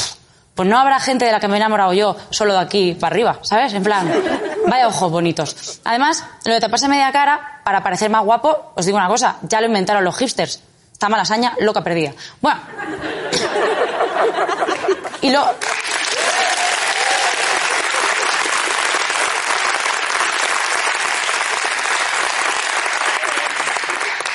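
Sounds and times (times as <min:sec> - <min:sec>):
speech: 0:00.6 - 0:16.0
laughter: 0:04.0 - 0:04.7, 0:12.7 - 0:15.2
audience applause: 0:15.6 - 0:24.3.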